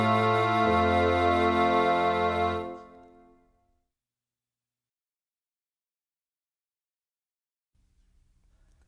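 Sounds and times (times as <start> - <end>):
music: 0.0 - 3.9.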